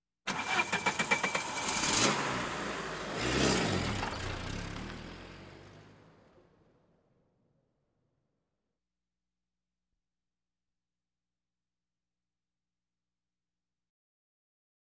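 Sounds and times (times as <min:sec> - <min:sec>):
various automobiles: 0:00.3 - 0:07.3.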